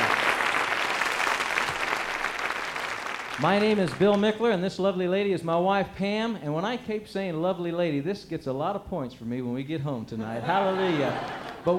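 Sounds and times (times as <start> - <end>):
church congregation applauding: 0.0 - 4.3, 10.6 - 11.7
speech: 3.4 - 11.7
laughter: 10.2 - 11.7.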